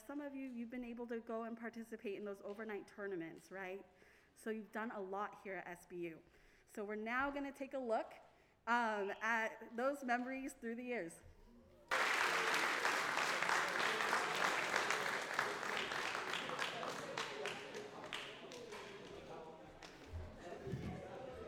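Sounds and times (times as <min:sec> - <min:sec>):
speech: 0:00.1 - 0:11.3
audience applause: 0:11.9 - 0:20.0.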